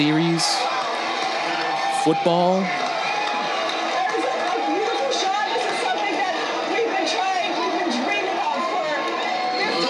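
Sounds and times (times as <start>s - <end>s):
speech: 0.0s - 0.6s, 2.0s - 2.8s
large excited crowd cheering: 0.0s - 9.8s.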